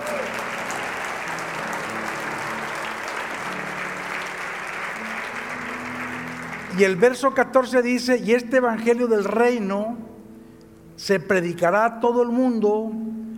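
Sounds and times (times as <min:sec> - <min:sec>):
audience applause: 0:00.0 - 0:07.2
speech: 0:06.8 - 0:10.0, 0:11.0 - 0:13.0.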